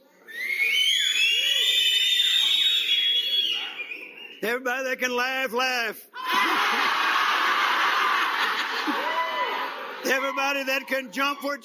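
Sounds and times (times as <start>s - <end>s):
audience whistling: 0.3s - 4.5s
speech: 4.4s - 7.0s, 8.8s - 9.2s, 10.0s - 11.6s
laughter: 6.2s - 10.4s.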